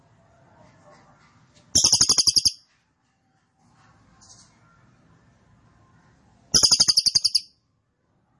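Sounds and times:
cililin singing rapid high-pitched rattling trills: 1.8 - 2.6, 6.6 - 7.5.

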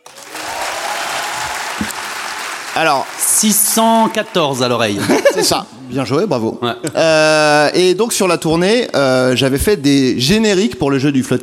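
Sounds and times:
audience applause at a live show: 0.0 - 5.1
speech: 2.8 - 11.4
laughter: 4.8 - 5.6.

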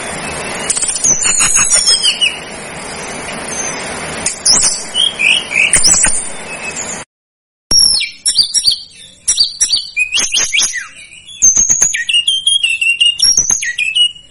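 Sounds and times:
Sunda whistling thrush singing: 0.0 - 3.8, 4.4 - 7.0, 7.7 - 14.2.

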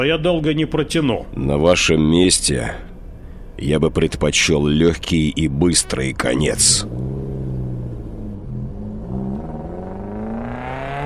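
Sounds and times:
speech: 0.0 - 2.9, 3.6 - 7.3
sand vehicle motor driving away: 5.6 - 11.0.

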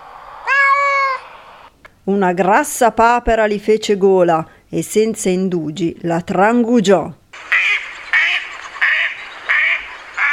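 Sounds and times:
faint hiss: 0.0 - 10.3
cat meowing: 0.4 - 1.3
speech: 2.1 - 7.2.

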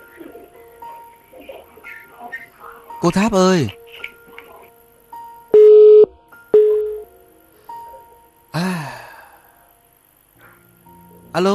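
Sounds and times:
speech: 3.0 - 3.8
telephone busy tone: 5.6 - 7.0.

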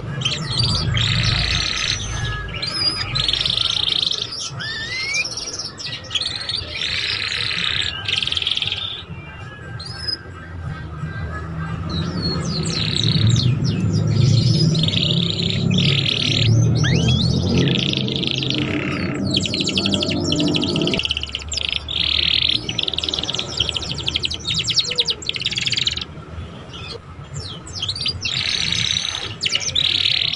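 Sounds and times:
Belgian canary trilling and chirping: 0.0 - 30.3
low droning noise: 13.8 - 21.1.

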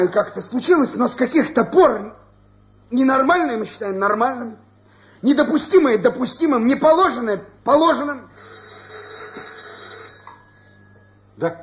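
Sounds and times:
speech: 0.0 - 2.2, 2.9 - 4.6, 5.2 - 8.3, 11.4 - 11.6
telephone ringing: 8.0 - 11.4.

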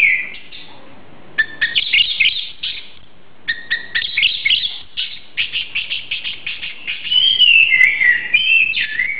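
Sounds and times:
Oriental magpie-robin song: 0.0 - 0.8, 1.4 - 9.1.

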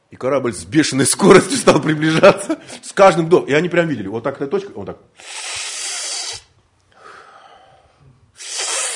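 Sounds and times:
speech: 0.2 - 5.6
person forcefully sucking air in through the mouth: 5.2 - 8.9.

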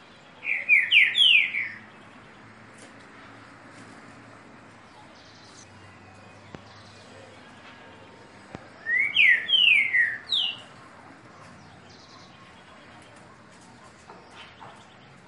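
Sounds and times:
green-winged saltator singing downslurred whistles: 0.4 - 1.8, 8.8 - 10.6.

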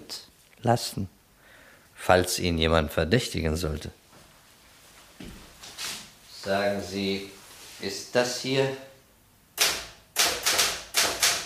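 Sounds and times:
speech: 0.1 - 1.2, 2.0 - 4.0, 6.4 - 8.9
key strikes on a Remington typewriter typing a type sample: 9.6 - 11.4.

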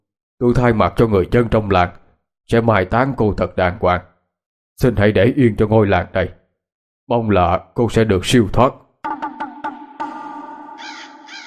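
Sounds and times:
speech: 0.4 - 4.1, 4.8 - 6.4, 7.1 - 8.8
crows cawing mournfully: 10.7 - 11.4.

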